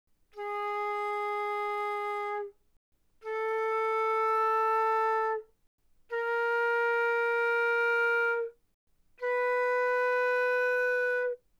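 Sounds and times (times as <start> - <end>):
flute notes without vibrato, mezzo forte: 0.4 - 2.5, 3.2 - 5.5, 6.1 - 8.6, 9.2 - 11.4.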